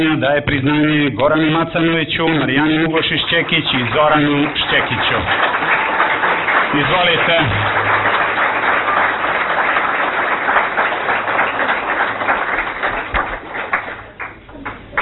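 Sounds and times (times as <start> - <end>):
speech: 0.0 - 5.7, 6.7 - 8.1
audience applause at an award ceremony: 2.2 - 15.0.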